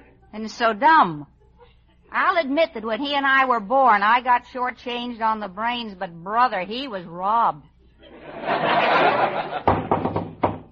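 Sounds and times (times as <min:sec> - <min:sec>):
speech: 0:00.3 - 0:01.4, 0:02.1 - 0:07.7
laughter: 0:08.0 - 0:09.8
knock at the door: 0:09.7 - 0:10.6.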